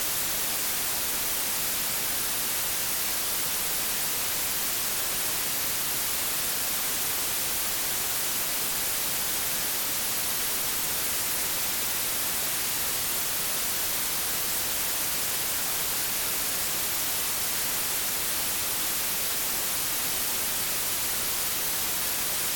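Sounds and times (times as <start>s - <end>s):
white noise: 0.0s - 22.5s.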